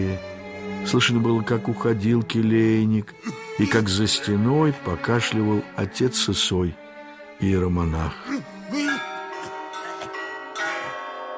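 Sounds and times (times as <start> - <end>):
speech: 0.0 - 6.8, 7.4 - 8.8
monastery clock striking the quarter hour: 9.0 - 11.3.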